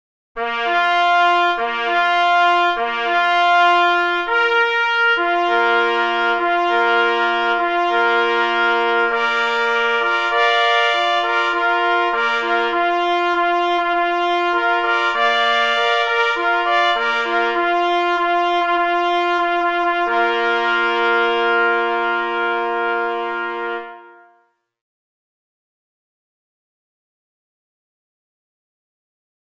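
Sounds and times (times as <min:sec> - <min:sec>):
trumpet call: 0:00.4 - 0:24.6.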